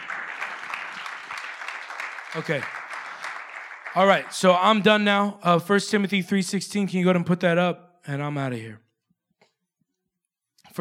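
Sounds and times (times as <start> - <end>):
audience applause: 0.0 - 5.1
speech: 2.3 - 2.8, 3.9 - 8.8.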